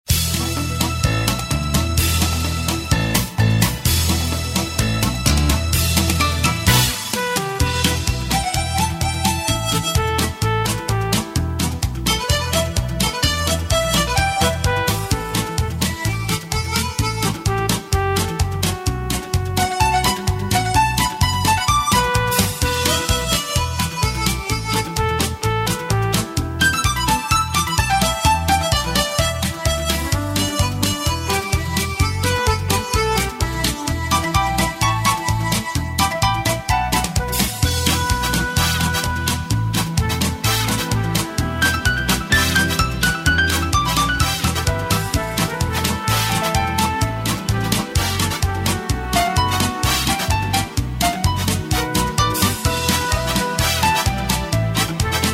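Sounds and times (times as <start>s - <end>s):
music: 0.0s - 55.3s.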